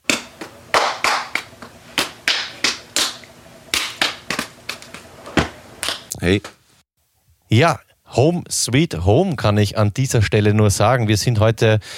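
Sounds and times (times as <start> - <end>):
hands slapping together in a handshake: 0.0 - 4.8
speech: 6.2 - 6.6, 7.5 - 11.9.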